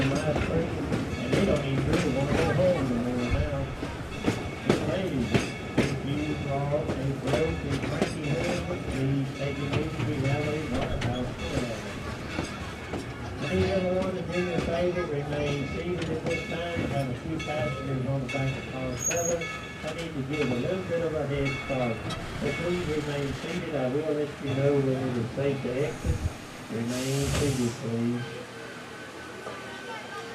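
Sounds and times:
people talking: 0.0 - 4.0, 4.7 - 12.7, 13.3 - 28.8, 29.4 - 30.3
train rumbling: 0.0 - 30.3
bright hiss: 25.8 - 28.1.

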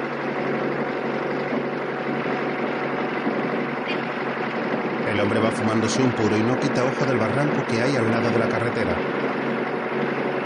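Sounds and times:
truck engine running while driving: 0.0 - 10.4
speech: 5.2 - 9.2.

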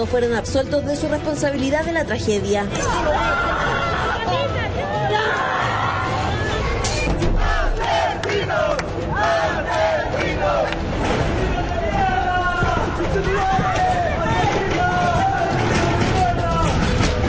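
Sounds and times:
speech: 0.0 - 5.8
angry crowd shouting inside a courthouse: 2.7 - 17.2.

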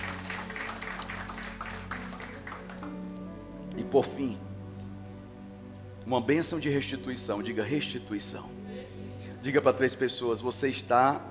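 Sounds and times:
audience applause: 0.0 - 3.0
speech: 3.9 - 4.5, 6.1 - 8.6, 9.4 - 11.2.

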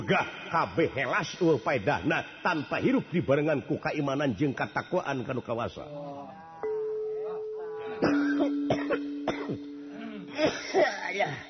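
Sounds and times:
speech: 0.1 - 6.4
cough: 8.0 - 11.4.

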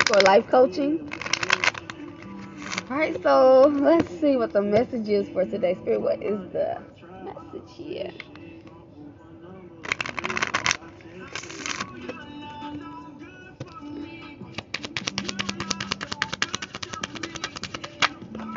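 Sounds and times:
oracle cards being shuffled and drawn by hand: 0.0 - 0.4, 1.0 - 4.2, 9.8 - 12.2, 14.5 - 18.5
speech: 0.1 - 1.2, 2.9 - 6.9, 7.5 - 8.3.

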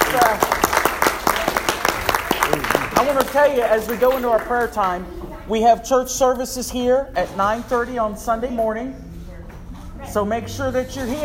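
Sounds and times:
audience hand clapping: 0.0 - 5.0
speech: 3.0 - 9.1, 10.1 - 11.2.

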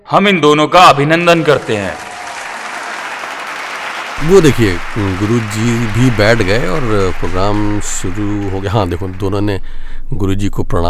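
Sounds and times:
speech: 0.1 - 2.1, 4.2 - 10.8
loud audience applause: 1.3 - 9.5.

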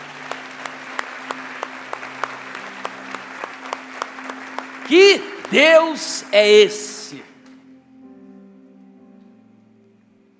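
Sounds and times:
audience applauding: 0.0 - 7.6
speech: 4.9 - 7.3.

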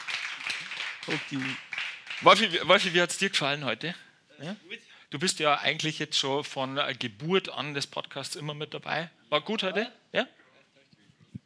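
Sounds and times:
applause: 0.0 - 3.3
speech: 1.1 - 10.4.

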